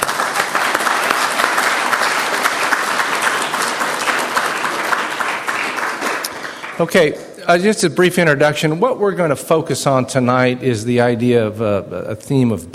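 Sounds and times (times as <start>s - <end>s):
audience applause: 0.0s - 7.2s
speech: 6.8s - 12.7s.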